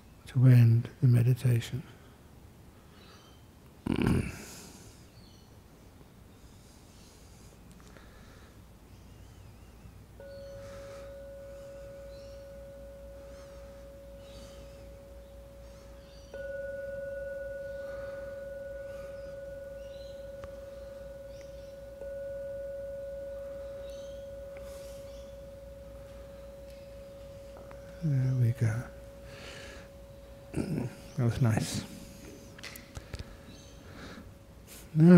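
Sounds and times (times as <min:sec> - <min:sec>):
speech: 0:00.3 - 0:02.0, 0:31.3 - 0:31.8, 0:35.0 - 0:35.1
gong strikes: 0:10.2 - 0:33.0.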